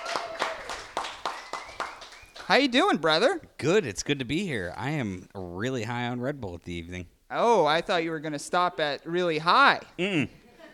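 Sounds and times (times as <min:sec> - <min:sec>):
small applause: 0:00.0 - 0:02.9
speech: 0:02.5 - 0:10.4.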